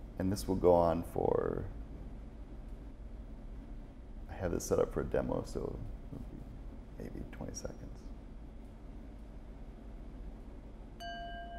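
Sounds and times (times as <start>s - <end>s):
low rumble: 0.0s - 11.5s
speech: 0.2s - 1.8s, 4.4s - 6.4s, 7.0s - 8.1s
meditation app chime: 11.0s - 11.5s.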